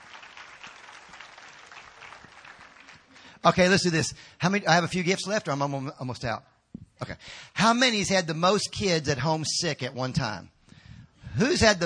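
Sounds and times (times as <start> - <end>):
crowd applauding: 0.0 - 3.5
speech: 3.4 - 10.6, 11.4 - 11.8.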